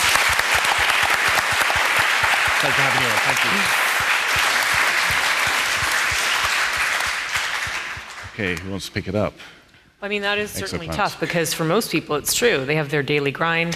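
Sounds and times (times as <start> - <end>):
audience applause: 0.0 - 8.8
speech: 2.6 - 3.9, 8.4 - 13.7.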